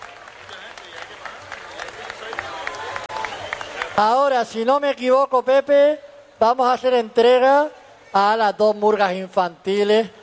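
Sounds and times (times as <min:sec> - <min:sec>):
audience applause: 0:00.0 - 0:04.0
speech: 0:04.0 - 0:10.2.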